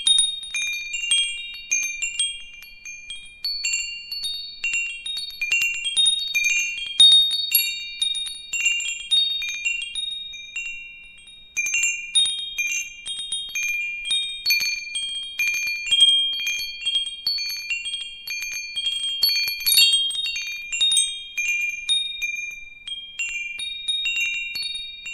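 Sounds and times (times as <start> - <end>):
metal wind chimes: 0.0 - 25.1.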